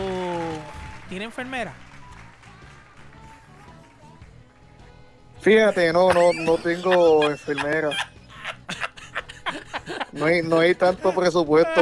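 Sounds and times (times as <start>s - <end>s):
audience applause: 0.0s - 3.9s
speech: 1.1s - 1.9s, 5.4s - 8.1s, 10.2s - 11.8s
laughter: 5.6s - 11.8s.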